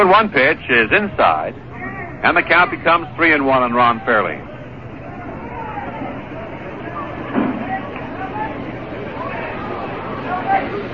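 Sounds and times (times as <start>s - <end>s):
speech: 0.0s - 4.5s
ballpark crowd murmur at Jarry Park: 0.0s - 10.9s.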